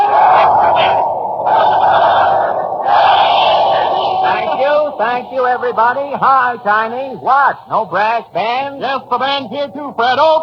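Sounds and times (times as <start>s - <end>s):
crowd cheering at train arrival: 0.0s - 7.0s
speech: 5.0s - 10.4s.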